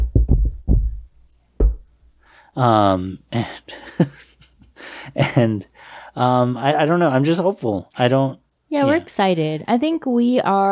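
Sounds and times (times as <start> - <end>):
dull low knocks on wood: 1.6 - 1.8
speech: 2.6 - 4.4, 5.0 - 10.7.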